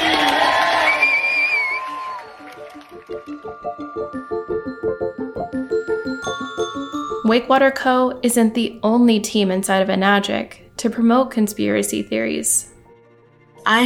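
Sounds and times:
crowd cheering and whooping: 0.0 - 4.2
steady rhythmic clapping: 0.0 - 7.2
speech: 3.2 - 5.3, 7.3 - 12.7, 13.6 - 13.8.

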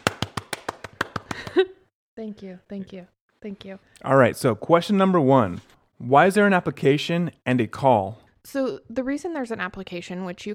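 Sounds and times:
applause: 0.0 - 1.6
speech: 1.5 - 10.5.

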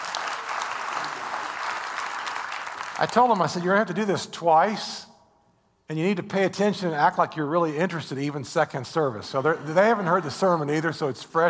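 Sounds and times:
church congregation clapping: 0.0 - 4.0, 9.3 - 11.1
speech: 3.0 - 5.1, 5.9 - 11.4.

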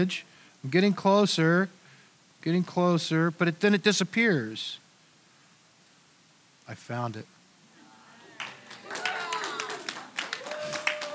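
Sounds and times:
speech: 0.0 - 1.8, 2.4 - 4.8, 6.7 - 7.3
audience clapping: 8.3 - 11.1.

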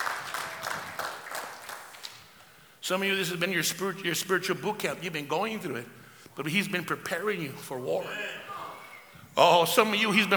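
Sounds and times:
audience clapping: 0.0 - 2.6
speech: 2.9 - 8.4, 9.4 - 10.3.

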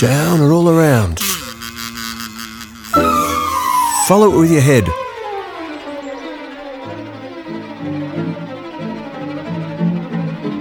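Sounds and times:
speech: 0.0 - 1.2, 4.1 - 5.0
bee buzzing: 0.0 - 5.8.

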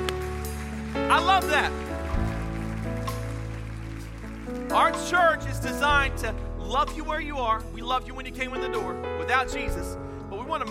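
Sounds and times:
audience clapping hands in praise: 0.0 - 5.8
speech: 1.2 - 1.9, 4.7 - 10.6.

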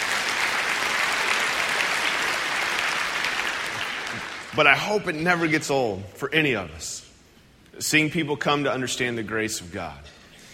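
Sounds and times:
audience applause: 0.0 - 4.7
speech: 4.6 - 7.0, 7.8 - 10.2.

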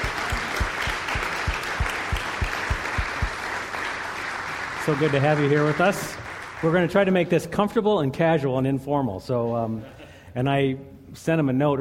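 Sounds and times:
audience clapping to welcome the mayor of Cedar Rapids: 0.0 - 6.9
speech: 4.8 - 11.8.

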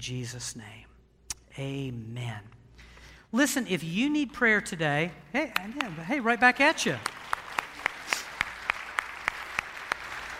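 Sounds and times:
speech: 0.0 - 0.9, 1.6 - 2.6, 3.3 - 7.2
audience clapping in unison: 5.4 - 10.3.

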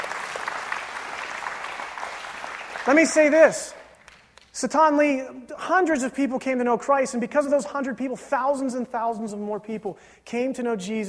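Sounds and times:
audience clapping: 0.0 - 4.6
speech: 2.8 - 3.8, 4.6 - 11.0.

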